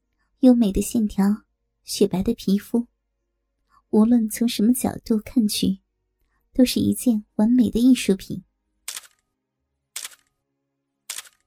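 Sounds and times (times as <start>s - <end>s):
speech: 0.4s - 2.9s, 3.9s - 5.8s, 6.6s - 8.5s
camera shutter clicks: 8.9s - 9.2s, 10.0s - 10.3s, 11.1s - 11.4s.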